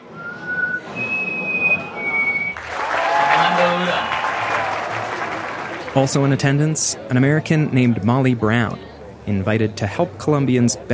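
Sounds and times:
person whistling imitation of chestnut-breasted wren call: 0:00.0 - 0:02.6
crowd applause: 0:01.7 - 0:06.8
speech: 0:06.0 - 0:10.9.

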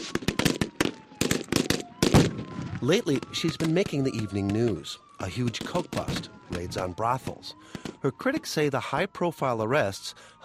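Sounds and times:
gunshots during a mock terrorist kidnapping exercise: 0:00.0 - 0:04.6, 0:05.5 - 0:06.4
speech: 0:02.8 - 0:10.4.

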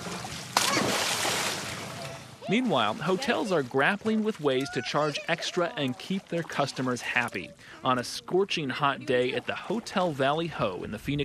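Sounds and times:
splash in the Hotel Valley Ho swimming pool: 0:00.0 - 0:07.5
guests splashing in the Hotel Valley Ho pool in Scottsdale: 0:00.0 - 0:11.2
speech: 0:02.5 - 0:11.2.

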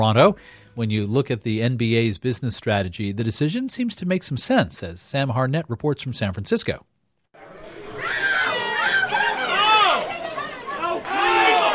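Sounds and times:
speech: 0:00.0 - 0:06.9
crowd chatter in a sports bar: 0:07.4 - 0:11.7.

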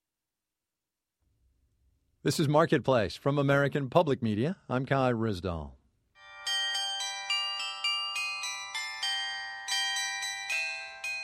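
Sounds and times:
speech: 0:02.2 - 0:05.8
bells of St. Johann's Church in Davos, Switzerland: 0:06.2 - 0:11.2.

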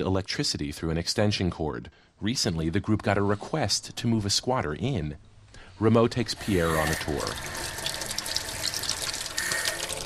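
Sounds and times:
speech: 0:00.0 - 0:07.8
water running from a tap in a vacant house: 0:06.3 - 0:10.0.

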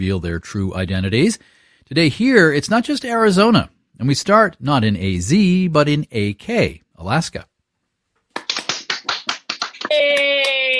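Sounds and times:
speech: 0:00.0 - 0:07.5, 0:09.9 - 0:10.5
applause over Zoom: 0:08.3 - 0:10.7.

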